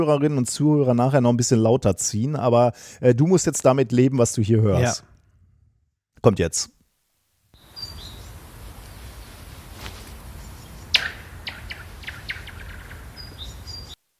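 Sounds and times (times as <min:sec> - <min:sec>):
speech: 0:00.0 - 0:05.2, 0:06.2 - 0:06.8
short high bird chirps: 0:07.6 - 0:08.4, 0:10.4 - 0:14.0
sharp sudden crack: 0:10.9 - 0:12.6.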